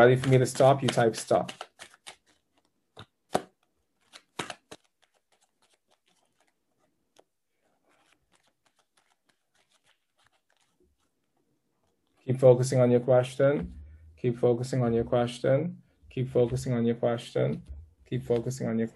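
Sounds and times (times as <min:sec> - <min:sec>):
speech: 0:00.0 - 0:01.7, 0:12.4 - 0:18.9
tarot cards being shuffled: 0:00.0 - 0:12.2.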